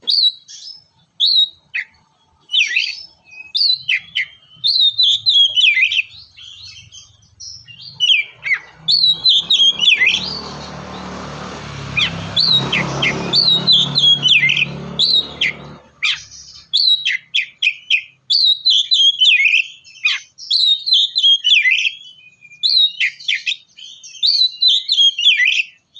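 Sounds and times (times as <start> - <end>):
Oriental magpie-robin singing: 0.0 - 25.9
loud rumbling noise: 7.8 - 16.0.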